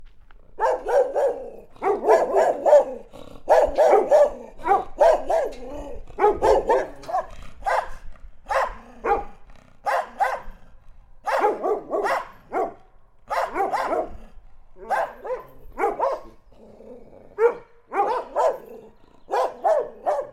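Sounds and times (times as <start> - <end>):
dog barking: 0.6 - 10.6, 11.2 - 14.2, 14.8 - 16.4, 17.4 - 20.3.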